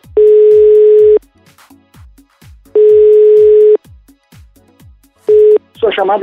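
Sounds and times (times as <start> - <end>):
telephone ringback tone during an unanswered call: 0.1 - 1.2, 2.8 - 3.8, 5.3 - 5.6.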